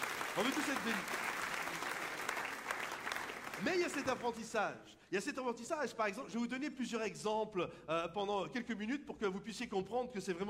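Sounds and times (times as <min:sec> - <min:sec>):
audience applause: 0:00.0 - 0:04.6
speech: 0:00.4 - 0:01.2, 0:03.6 - 0:10.4.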